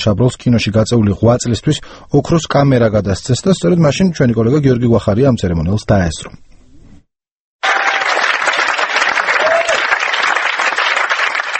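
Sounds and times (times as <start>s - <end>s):
speech: 0.0s - 6.5s
standing ovation for Claude Chabrol at the Berlin Film Festival: 7.6s - 11.5s.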